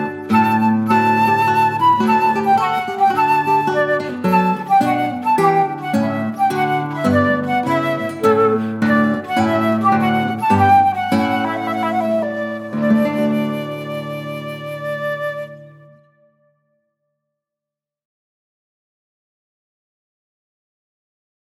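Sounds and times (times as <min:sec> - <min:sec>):
trumpet piece: 0:00.0 - 0:16.5.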